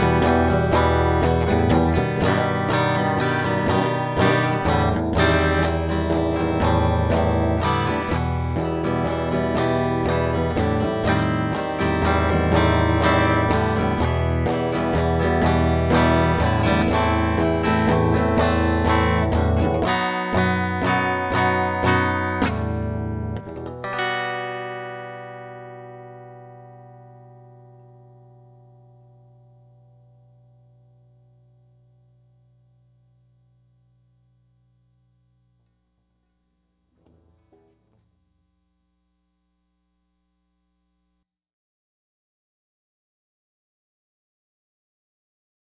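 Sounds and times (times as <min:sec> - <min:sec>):
E harmonic minor scale: 0:00.0 - 0:33.6.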